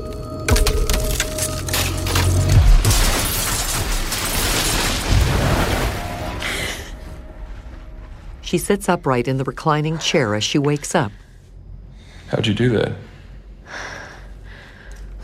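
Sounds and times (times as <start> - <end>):
glass wall cracking: 0.5 - 6.3
speech: 8.5 - 11.2, 12.3 - 13.1.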